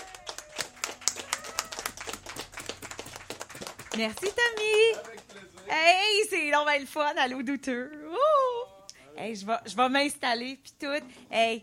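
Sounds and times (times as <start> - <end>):
live comedy show audience applause: 0.0 - 5.8
speech: 4.0 - 8.4, 9.2 - 11.6.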